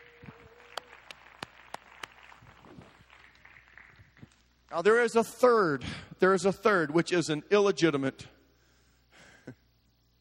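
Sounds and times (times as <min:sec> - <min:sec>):
audience clapping hands: 0:00.0 - 0:04.6
speech: 0:04.7 - 0:08.4.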